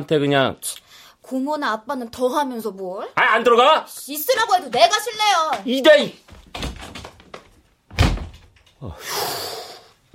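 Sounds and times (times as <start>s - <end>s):
speech: 0.0s - 0.7s, 1.3s - 6.3s, 8.8s - 9.5s
door closing thump: 6.3s - 7.3s, 7.9s - 8.6s
door knocks and rattles: 6.3s - 8.7s.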